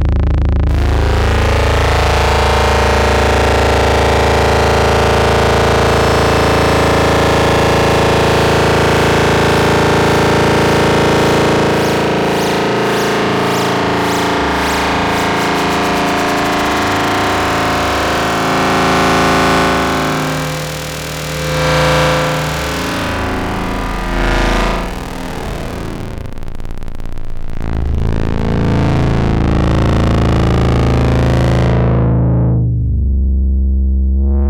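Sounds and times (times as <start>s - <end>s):
thick loud synthetic drone with gritty texture: 0.0s - 34.4s.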